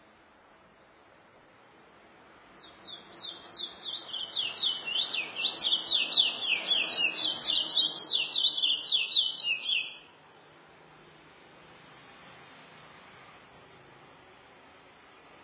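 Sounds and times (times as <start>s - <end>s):
chestnut-bellied seed finch singing: 2.6s - 10.1s.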